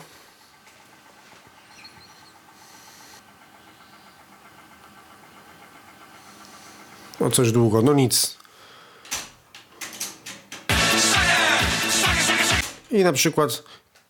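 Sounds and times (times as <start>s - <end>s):
speech: 7.2s - 8.4s, 13.0s - 13.8s
tape deck rewinding cassette: 9.8s - 12.9s.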